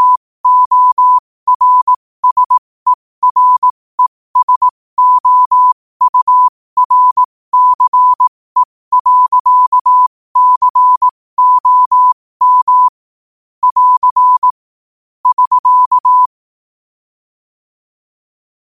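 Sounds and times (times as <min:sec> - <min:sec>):
morse code at 5 wpm: 0:00.0 - 0:02.6, 0:03.2 - 0:13.0, 0:13.6 - 0:14.6, 0:15.2 - 0:16.3.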